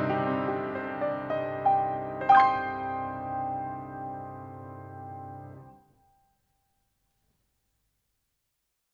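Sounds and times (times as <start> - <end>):
piano: 0.0 - 6.3.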